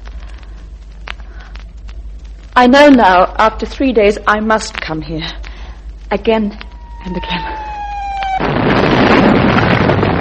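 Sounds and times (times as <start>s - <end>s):
brief steady tonal whine before a bomb explosion: 0.0s - 4.8s, 5.4s - 10.1s
speech: 2.6s - 5.4s, 6.1s - 7.6s
bomb explosion: 6.7s - 10.1s.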